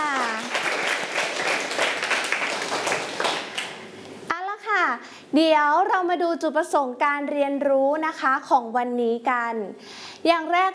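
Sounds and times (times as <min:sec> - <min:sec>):
children clapping: 0:00.0 - 0:03.8
speech: 0:05.3 - 0:10.7.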